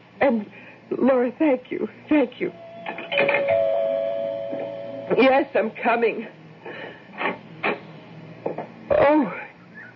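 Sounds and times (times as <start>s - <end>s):
speech: 0.2s - 2.6s, 3.2s - 3.5s, 5.1s - 6.4s, 8.9s - 9.4s
doorbell chime: 3.2s - 5.1s.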